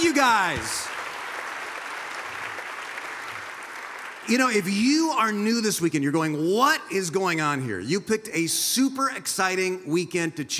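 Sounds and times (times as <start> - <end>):
church congregation applause welcoming ministry partners: 0.0 - 5.5
speech: 0.2 - 1.0, 4.2 - 10.5.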